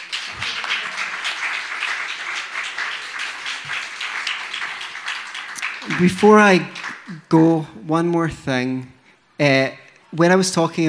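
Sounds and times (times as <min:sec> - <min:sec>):
crowd clapping: 0:00.0 - 0:07.3
speech: 0:05.9 - 0:10.8.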